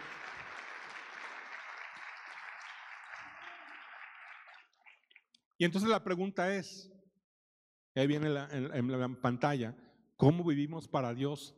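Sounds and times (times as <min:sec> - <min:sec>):
audience applause: 0:00.0 - 0:05.2
speech: 0:05.6 - 0:06.9, 0:08.0 - 0:11.5.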